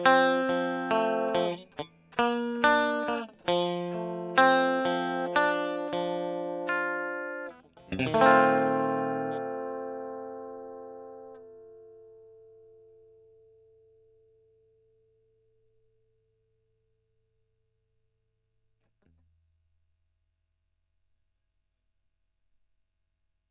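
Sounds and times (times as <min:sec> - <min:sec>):
electric guitar: 0:00.0 - 0:13.0.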